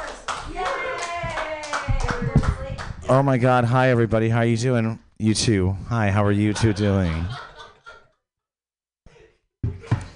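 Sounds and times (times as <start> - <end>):
audience applause greeting a guest at a live comedy show: 0.0 - 2.9
speech: 3.1 - 7.4
laughter: 6.1 - 8.2.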